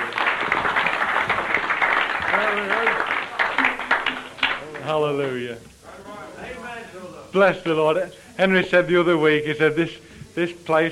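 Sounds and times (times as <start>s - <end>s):
audience clapping: 0.0s - 5.5s
speech: 7.3s - 10.9s.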